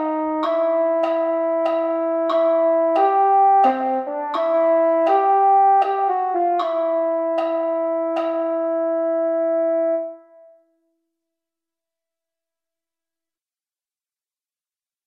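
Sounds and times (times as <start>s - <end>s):
mellophones playing: 0.0s - 10.1s.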